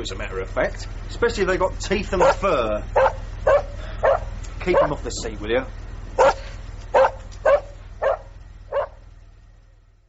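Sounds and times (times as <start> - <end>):
speech: 0.0 - 3.6, 4.6 - 6.4
low constant hum: 0.0 - 10.0
dog barking: 2.2 - 5.0, 6.2 - 9.0.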